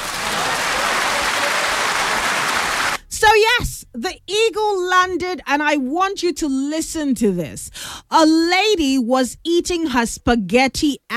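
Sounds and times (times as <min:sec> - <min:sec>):
applause: 0:00.0 - 0:03.0
speech: 0:03.4 - 0:11.1.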